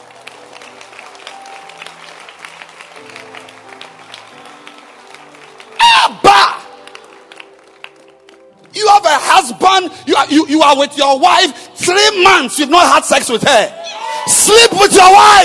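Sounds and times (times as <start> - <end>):
audience clapping hands: 0.0 - 9.6
speech: 9.4 - 15.4.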